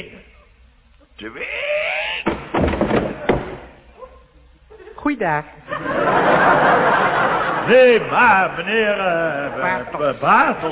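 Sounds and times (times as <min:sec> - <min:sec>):
speech: 0:01.2 - 0:01.8, 0:05.0 - 0:10.7
door being yanked open: 0:02.2 - 0:03.7
laughter: 0:05.6 - 0:10.7.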